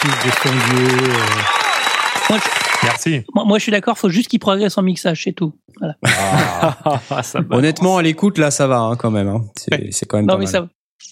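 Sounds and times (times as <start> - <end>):
applause: 0.0 - 3.1
speech: 0.1 - 1.6, 2.3 - 11.1
laughter: 6.0 - 8.0.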